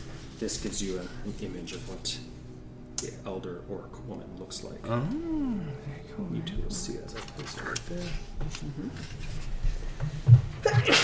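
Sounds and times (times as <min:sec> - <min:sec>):
low murmuring hum: 0:00.0 - 0:10.8
speech: 0:00.4 - 0:02.4, 0:03.0 - 0:11.0
sneeze: 0:10.6 - 0:11.0.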